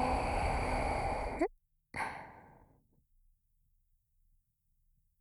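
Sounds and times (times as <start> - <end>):
person breathing deeply: 0.0 - 2.5.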